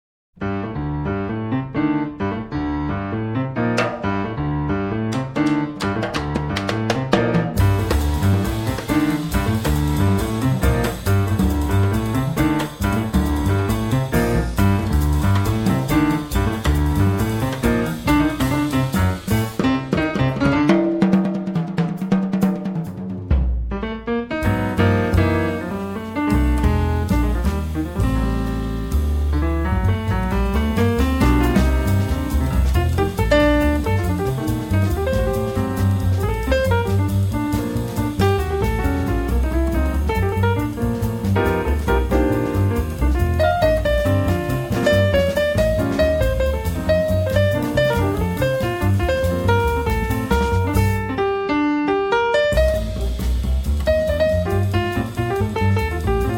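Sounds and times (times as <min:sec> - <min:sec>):
jazz music: 0:00.4 - 0:56.3.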